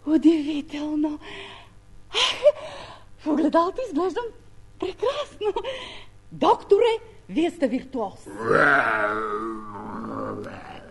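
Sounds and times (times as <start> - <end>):
speech: 0.1 - 10.8
human voice imitating a tiger's terrible roar: 8.3 - 10.9.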